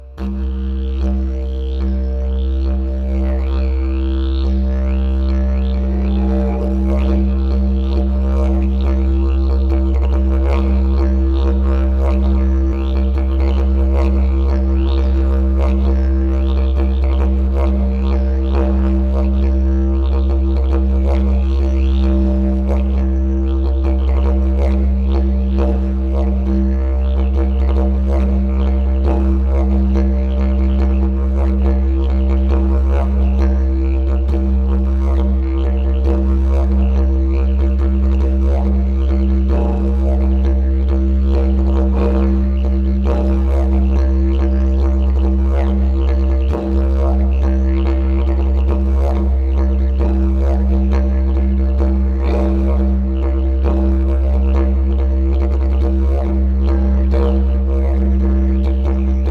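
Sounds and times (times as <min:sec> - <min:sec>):
didgeridoo: 0:00.0 - 0:59.2.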